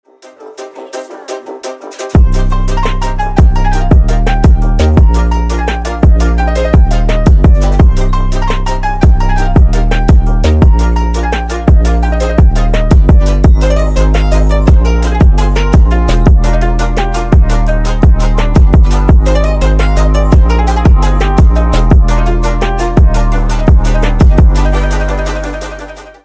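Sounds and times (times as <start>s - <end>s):
phonk remix: 0.1s - 26.2s.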